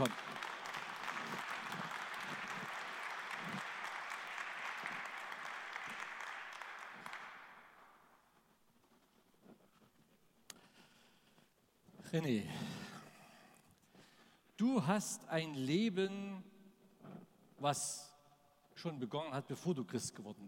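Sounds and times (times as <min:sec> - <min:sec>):
speech: 0:00.0 - 0:00.2, 0:12.1 - 0:12.8, 0:14.6 - 0:16.5, 0:17.6 - 0:18.1, 0:18.8 - 0:20.4
audience applause: 0:00.0 - 0:08.2.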